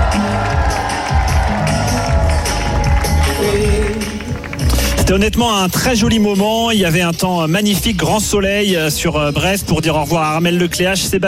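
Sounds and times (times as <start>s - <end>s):
crowd applauding at a boat departure in Finistère: 0.0s - 6.1s
speech: 5.1s - 11.2s.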